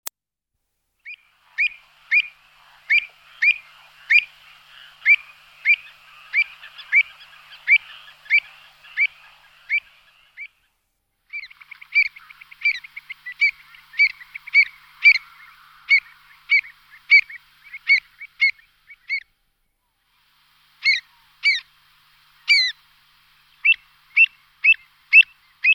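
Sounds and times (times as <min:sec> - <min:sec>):
pied avocet Recurvirostra avosetta calling: 0:01.0 - 0:10.5, 0:11.3 - 0:19.2, 0:20.8 - 0:21.7, 0:22.4 - 0:22.8, 0:23.6 - 0:25.7.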